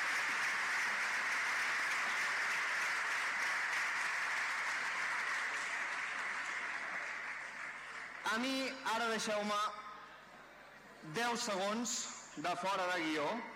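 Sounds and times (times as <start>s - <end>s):
crowd applauding: 0.0s - 8.7s
speech: 8.3s - 9.8s, 11.0s - 13.5s.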